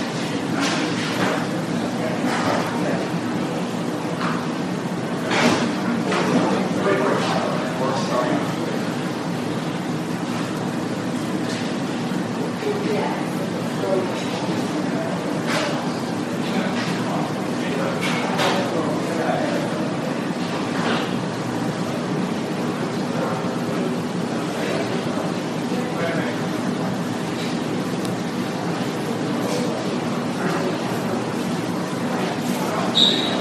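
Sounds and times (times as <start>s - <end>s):
murmur of voices in a hospital emergency room: 0.0s - 33.4s.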